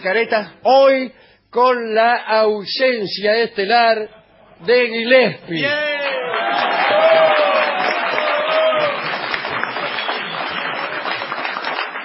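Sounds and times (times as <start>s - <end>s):
speech: 0.0s - 5.9s
crowd giving an ovation: 6.0s - 12.0s
high whistles: 9.8s - 10.9s.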